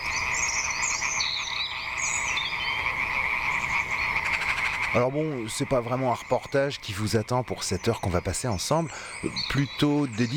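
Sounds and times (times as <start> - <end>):
frogs croaking near ponds in spring: 0.0 - 10.3
speech: 4.9 - 10.3.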